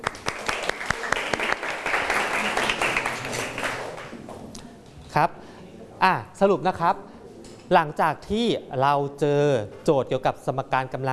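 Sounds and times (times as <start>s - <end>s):
students applauding in a classroom: 0.0s - 4.2s
speech: 5.2s - 7.1s, 7.7s - 11.1s.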